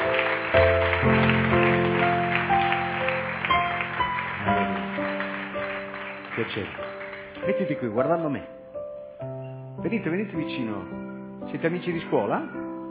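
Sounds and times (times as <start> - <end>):
crowd applause: 0.0 - 7.9
sustained keyboard chords: 0.0 - 12.8
speech: 6.6 - 8.6, 9.8 - 12.6.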